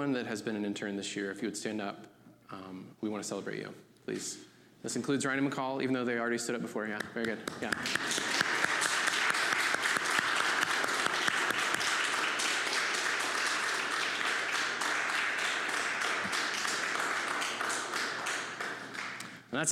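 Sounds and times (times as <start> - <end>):
speech: 0.0 - 8.4, 19.6 - 19.7
applause for the interns: 7.5 - 19.4.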